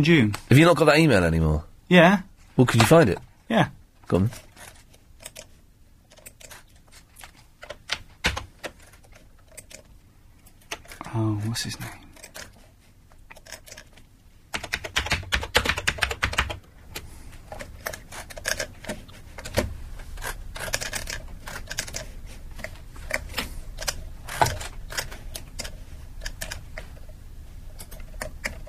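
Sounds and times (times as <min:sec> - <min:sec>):
speech: 0:00.0 - 0:04.5, 0:11.1 - 0:12.0
noisy computer mouse clicking in an office: 0:04.6 - 0:05.5, 0:06.1 - 0:09.9, 0:13.2 - 0:28.6.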